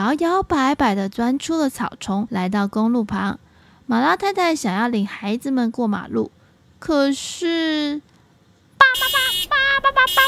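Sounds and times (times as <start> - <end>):
speech: 0.0 - 8.1, 9.0 - 10.2
car horns honking: 8.8 - 10.2.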